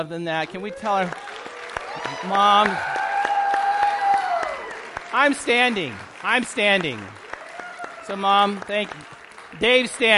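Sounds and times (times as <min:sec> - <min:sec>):
speech: 0:00.0 - 0:01.3, 0:02.0 - 0:03.0, 0:05.1 - 0:07.2, 0:08.1 - 0:10.1
audience applause for moms: 0:00.4 - 0:10.1
high cheer or whistle: 0:00.5 - 0:05.6, 0:07.2 - 0:09.1.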